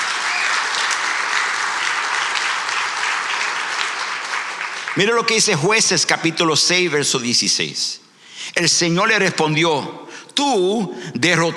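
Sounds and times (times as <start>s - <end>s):
audience applause: 0.0s - 5.5s
speech: 5.0s - 11.5s.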